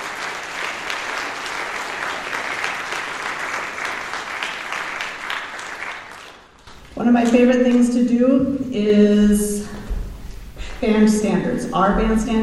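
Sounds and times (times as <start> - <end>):
audience applause: 0.0 - 7.0
speech: 7.0 - 9.8, 10.8 - 12.4.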